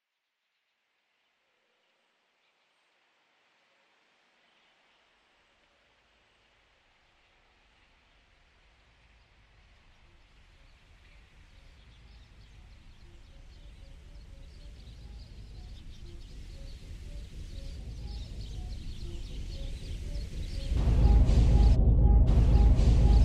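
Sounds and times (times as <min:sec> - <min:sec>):
echo: 0:17.7 - 0:23.2.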